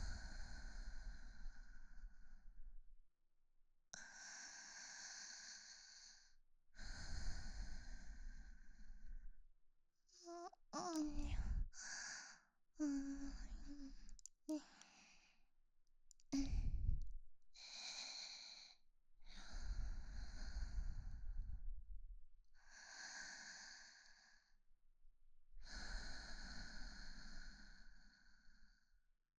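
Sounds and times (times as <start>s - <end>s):
woman breathing calmly in sleep beside her boyfriend: 0.0s - 2.6s, 4.0s - 9.3s, 10.2s - 15.4s, 16.4s - 17.0s, 17.6s - 21.7s, 22.7s - 24.5s, 25.6s - 28.9s.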